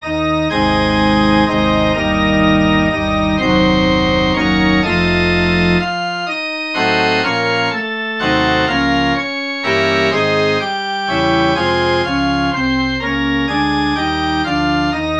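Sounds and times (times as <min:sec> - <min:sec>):
musical prelude: 0:00.0 - 0:15.1.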